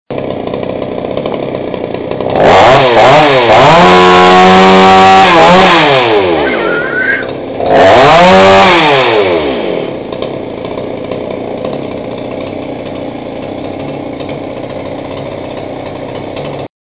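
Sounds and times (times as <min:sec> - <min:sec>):
motor engine: 0:00.1 - 0:16.7.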